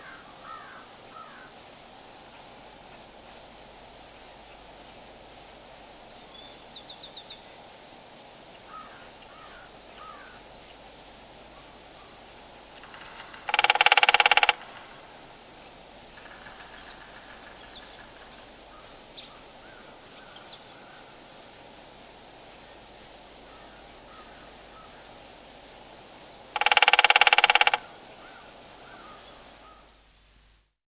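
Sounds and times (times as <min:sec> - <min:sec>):
woodpecker tapping: 0:12.7 - 0:15.0, 0:15.6 - 0:18.5, 0:26.6 - 0:29.0.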